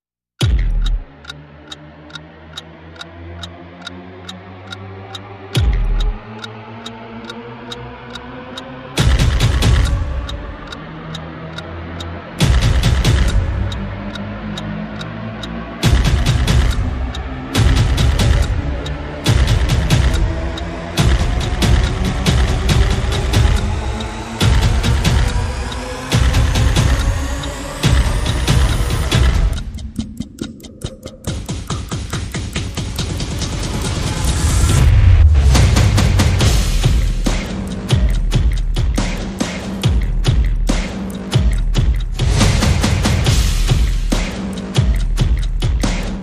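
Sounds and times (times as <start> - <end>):
percussion: 0.4 - 2.7, 5.5 - 46.2.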